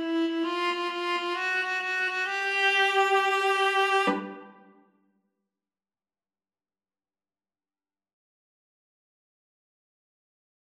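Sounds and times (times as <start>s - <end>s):
boogie viola duet: 0.0s - 4.6s.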